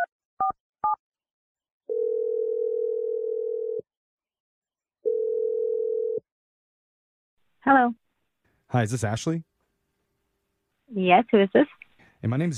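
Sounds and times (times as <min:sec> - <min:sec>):
telephone ringing tones: 0:01.9 - 0:03.8, 0:05.0 - 0:06.2
speech: 0:07.6 - 0:08.0, 0:08.7 - 0:09.5, 0:10.9 - 0:12.5.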